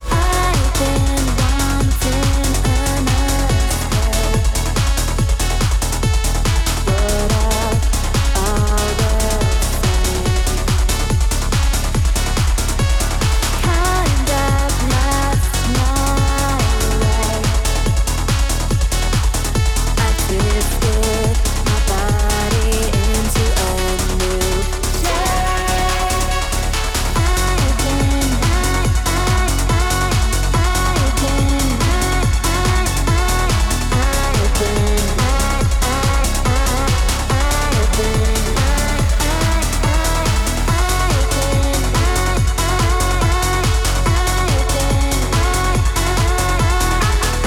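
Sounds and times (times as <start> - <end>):
rave remix music: 0.0 - 47.4.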